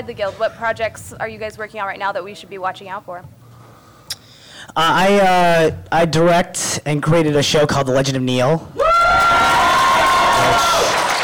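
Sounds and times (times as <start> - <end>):
speech: 0.0 - 3.4, 4.7 - 8.9
audience cheering: 8.8 - 11.2.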